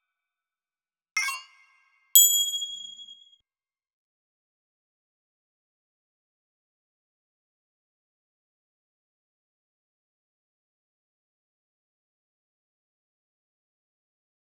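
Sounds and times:
percussion: 1.2s - 3.3s.

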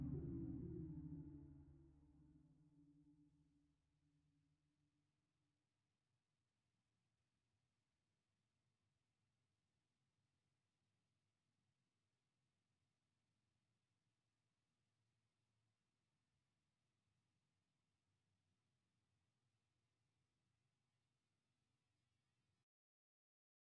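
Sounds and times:
drone: 0.0s - 1.9s.

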